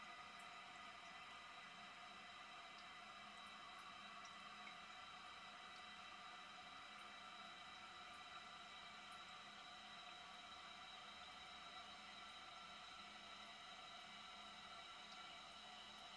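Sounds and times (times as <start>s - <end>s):
toilet bowl filling: 0.0s - 16.1s.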